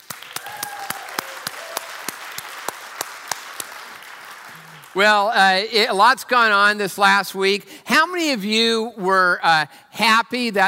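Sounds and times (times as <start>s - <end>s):
church congregation applauding to welcome viewers at other campuses: 0.0s - 5.7s
speech: 5.0s - 10.6s.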